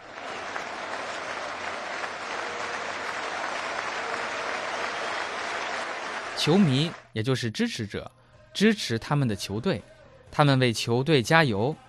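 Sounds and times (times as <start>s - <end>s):
football fans applauding their team: 0.0s - 7.1s
speech: 6.4s - 11.8s.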